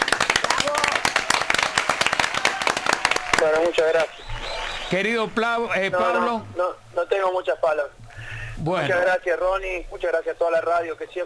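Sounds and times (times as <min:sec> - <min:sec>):
group applauding on a radio show for Cuarteto Day: 0:00.0 - 0:06.1
speech: 0:03.4 - 0:04.3, 0:04.9 - 0:08.0, 0:08.6 - 0:11.2.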